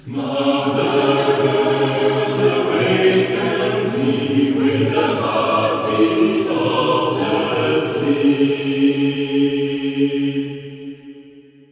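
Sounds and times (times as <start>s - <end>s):
choir singing: 0.0s - 11.7s.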